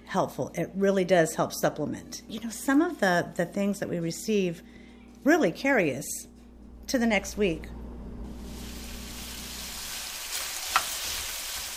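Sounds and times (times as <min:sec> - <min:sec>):
speech: 0:00.1 - 0:06.3, 0:06.9 - 0:07.8
low hum: 0:04.0 - 0:10.2
chicken sizzling in a hot pan as it is sautéed: 0:08.3 - 0:11.7.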